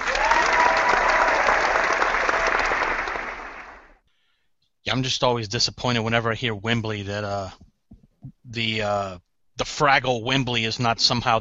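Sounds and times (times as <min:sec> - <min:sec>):
cup match stadium crowd cheering and applauding: 0:00.0 - 0:04.0
speech: 0:04.9 - 0:07.6, 0:08.5 - 0:11.3.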